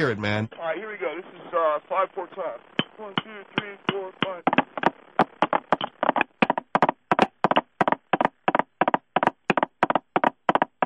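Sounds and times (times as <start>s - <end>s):
speech: 0.0s - 4.9s
knocking on instrument like horse hooves: 2.8s - 10.8s.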